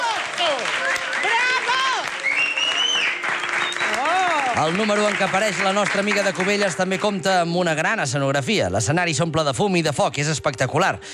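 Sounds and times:
audience applause and ovation: 0.0 - 7.0
speech: 4.6 - 11.1.

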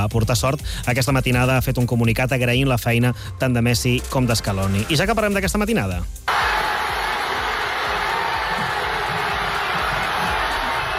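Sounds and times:
speech: 0.0 - 6.3
large crowd cheering at outdoor screening: 6.3 - 10.9
whoops: 6.3 - 10.9.

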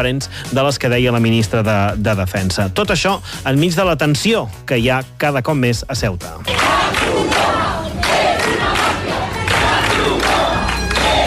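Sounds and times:
speech: 0.0 - 6.8
crowd of protesters shouting: 6.5 - 11.2.

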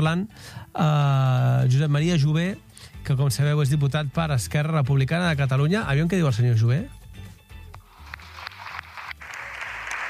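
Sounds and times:
speech: 0.0 - 7.0
steady applause from many people in a parliament chamber: 7.8 - 10.0.

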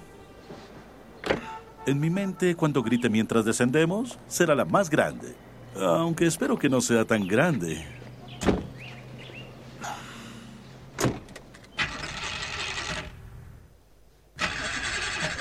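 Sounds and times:
speech: 1.8 - 8.0
car engine cranking failing to start: 11.0 - 13.4, 14.4 - 15.4.

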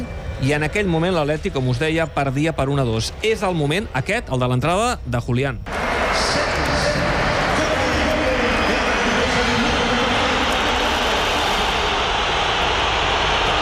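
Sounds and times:
speech: 0.4 - 5.7
stadium crowd whistling in protest: 5.7 - 13.6.

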